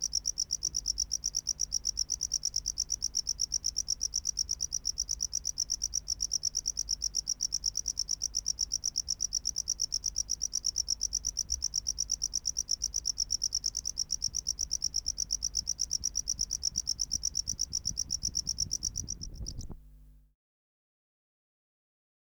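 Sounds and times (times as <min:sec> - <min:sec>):
tropical house cricket singing: 0:00.0 - 0:19.8.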